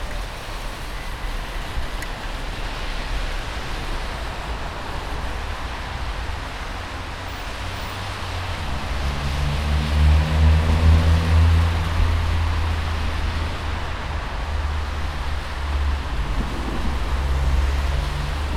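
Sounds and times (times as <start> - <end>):
urban city ambience on a rainy day: 0.0 - 18.5
distant thunder: 15.7 - 18.5.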